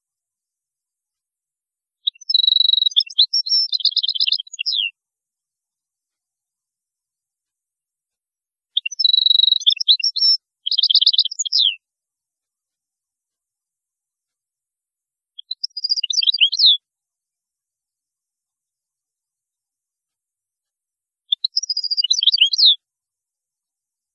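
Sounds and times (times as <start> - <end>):
European goldfinch song: 2.0 - 5.0, 8.7 - 11.8, 15.4 - 16.8, 21.3 - 22.8.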